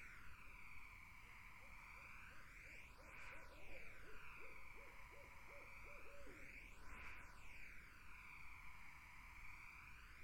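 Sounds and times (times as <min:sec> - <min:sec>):
buzzing insect chorus: 0:00.1 - 0:10.0
barred owl hooting: 0:01.6 - 0:06.5.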